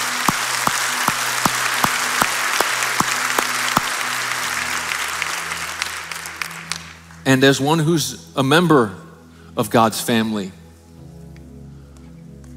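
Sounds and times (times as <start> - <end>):
church congregation applauding: 0.0 - 7.8
speech: 7.3 - 9.0, 9.6 - 10.6.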